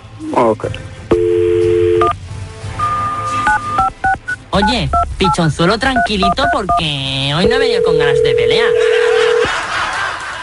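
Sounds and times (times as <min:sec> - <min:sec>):
speech: 0:00.2 - 0:00.9, 0:04.6 - 0:09.1
telephone number being dialed with touch tones: 0:01.1 - 0:02.2, 0:02.8 - 0:04.3, 0:06.0 - 0:09.5
laughter: 0:08.6 - 0:10.4.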